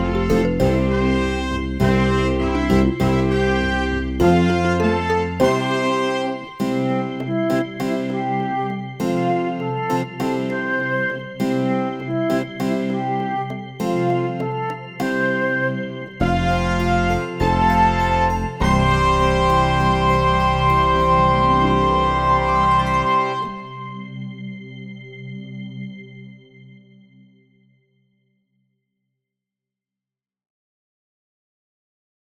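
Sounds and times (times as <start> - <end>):
instrumental music: 0.0 - 25.8.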